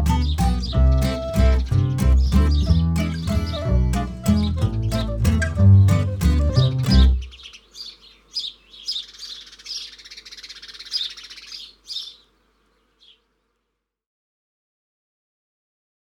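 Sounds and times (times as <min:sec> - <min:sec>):
instrumental music: 0:00.0 - 0:07.3.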